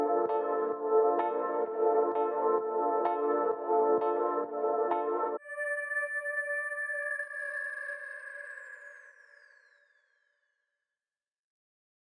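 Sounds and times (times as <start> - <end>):
ambient music: 0.0 - 9.4.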